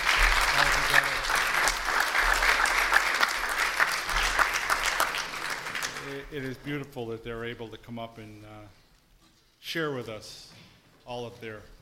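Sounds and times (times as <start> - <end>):
audience applause: 0.0 - 6.3
speech: 6.4 - 8.8, 9.6 - 11.8.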